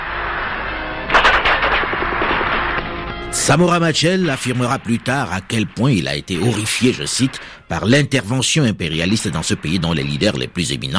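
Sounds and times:
crackling noise: 0.0 - 10.9
rapid gunfire: 1.1 - 2.8
speech: 3.3 - 10.9.

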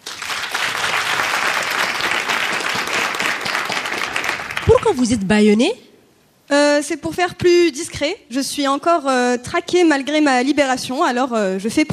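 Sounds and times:
applause: 0.0 - 5.2
speech: 4.9 - 5.8, 6.5 - 11.9.

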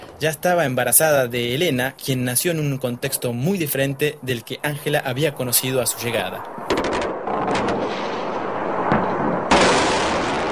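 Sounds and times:
speech: 0.2 - 6.7
missile explosions during bombing of Bagdad: 6.0 - 10.4.

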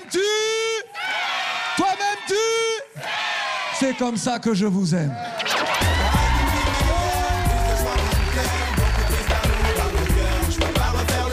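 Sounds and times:
lively crowd cheering with whoops and yells: 0.0 - 4.2, 5.1 - 11.3
speech: 3.8 - 5.3
applause: 5.8 - 11.3.

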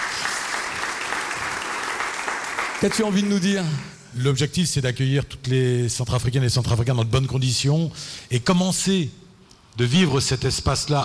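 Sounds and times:
applause honouring a man at an event: 0.0 - 4.0
speech: 2.8 - 9.2, 9.8 - 11.0.

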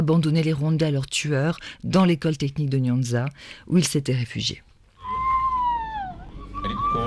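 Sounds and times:
speech: 0.0 - 4.7
women screaming at a commemoration ceremony: 5.0 - 7.0.

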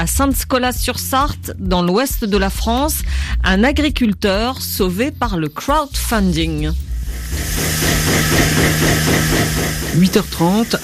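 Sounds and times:
speech: 0.0 - 10.8
milking machine running: 7.0 - 10.8.

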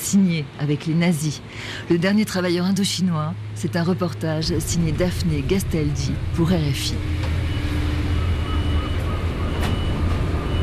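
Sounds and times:
speech: 0.1 - 7.3
industrial maritime quay ambience at the port of Marseille: 1.9 - 10.6.

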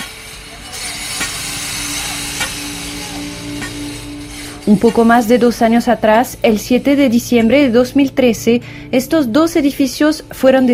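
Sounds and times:
electric saws: 0.0 - 7.7
speech: 4.7 - 10.7.

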